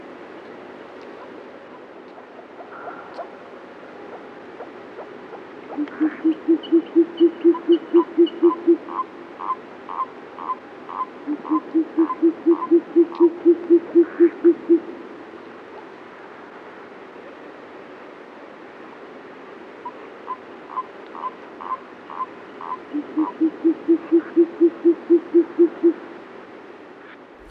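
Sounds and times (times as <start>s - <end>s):
short-eared owl hooting: 5.7s - 15.0s, 20.3s - 26.0s.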